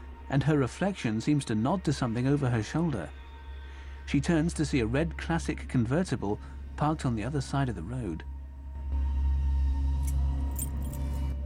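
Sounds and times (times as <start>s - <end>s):
steady low droning hum: 0.0s - 11.4s
speech: 0.3s - 3.2s, 4.1s - 8.3s
keys jingling: 10.0s - 11.4s.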